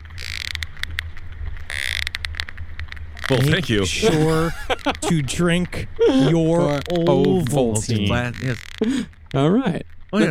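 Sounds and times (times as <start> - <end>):
sperm whale echolocation clicks: 0.0 - 3.8, 8.2 - 10.2
laughter: 3.3 - 9.1
speech: 3.3 - 10.2.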